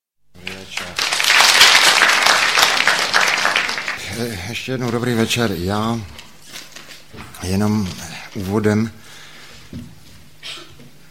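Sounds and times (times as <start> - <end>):
crowd applause: 0.4 - 4.4
speech: 4.2 - 6.2, 7.4 - 9.0, 9.7 - 10.0.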